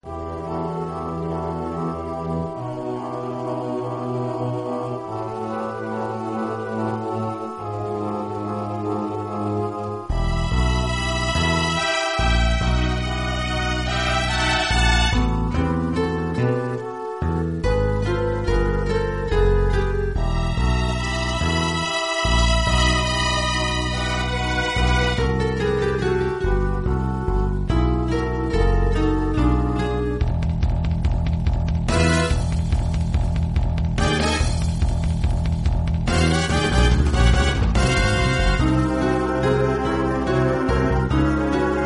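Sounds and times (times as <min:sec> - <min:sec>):
mysterious cave ambience: 0:00.0 - 0:41.8.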